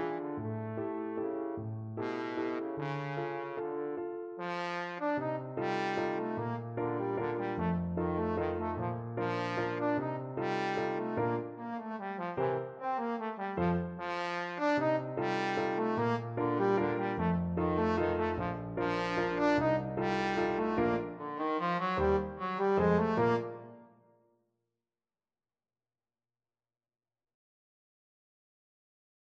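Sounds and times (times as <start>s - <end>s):
trombone playing a waltz: 0.0s - 1.2s, 2.0s - 23.8s.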